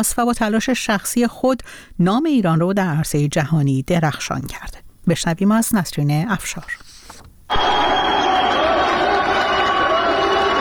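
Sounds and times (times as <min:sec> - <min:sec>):
speech: 0:00.0 - 0:06.9
crowd cheering: 0:07.5 - 0:10.5.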